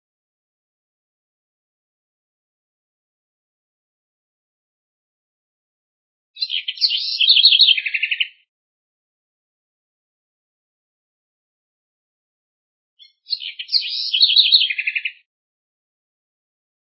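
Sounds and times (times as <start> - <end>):
house wren singing: 6.4 - 8.5, 13.0 - 15.3.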